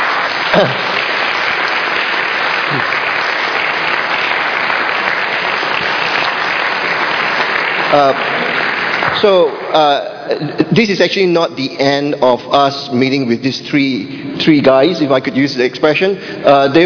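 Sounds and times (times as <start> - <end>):
audience applause: 0.0 - 10.1
speech: 0.6 - 0.9, 7.9 - 8.4, 9.2 - 16.8.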